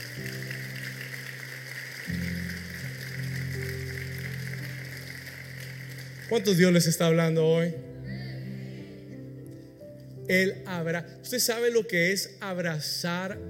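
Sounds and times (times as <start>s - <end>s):
audience applause: 0.0s - 7.1s
speech: 6.3s - 7.9s, 10.3s - 13.4s.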